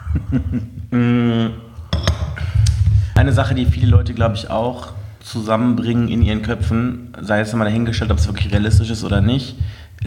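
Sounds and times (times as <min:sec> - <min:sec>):
laughter: 0:00.0 - 0:01.5
speech: 0:00.1 - 0:01.6, 0:03.2 - 0:10.0
coffee cups clinking in a toast: 0:01.8 - 0:02.6.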